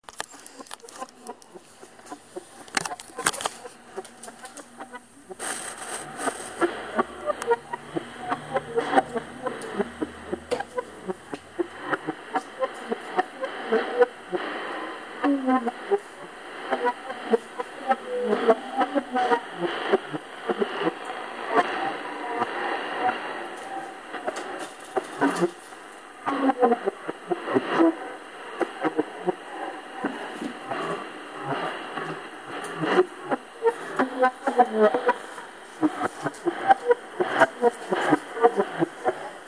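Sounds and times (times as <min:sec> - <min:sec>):
strange radio signal on 4731 kHz: 0:00.0 - 0:39.4.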